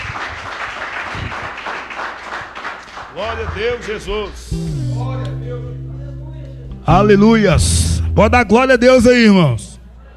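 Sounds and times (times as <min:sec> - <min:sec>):
church congregation clapping in praise: 0:00.0 - 0:05.0
speech: 0:03.2 - 0:05.8, 0:06.9 - 0:09.7.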